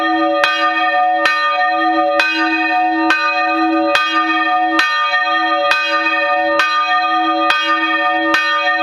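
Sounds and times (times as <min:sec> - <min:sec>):
church bell ringing: 0:00.0 - 0:08.8.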